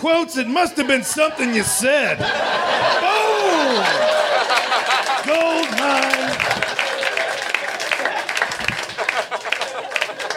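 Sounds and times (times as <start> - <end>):
speech: 0.0 - 4.1
laughter: 0.4 - 10.3
audience applause: 2.6 - 10.3.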